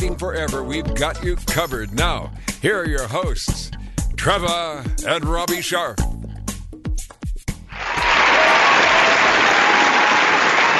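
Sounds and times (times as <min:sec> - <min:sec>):
speech: 0:00.0 - 0:06.1
audience applause: 0:07.7 - 0:10.7.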